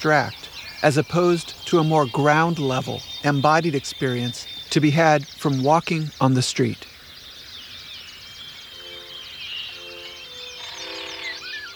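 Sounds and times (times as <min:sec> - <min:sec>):
speech: 0:00.0 - 0:06.9
migratory bird flight calls: 0:00.0 - 0:11.7.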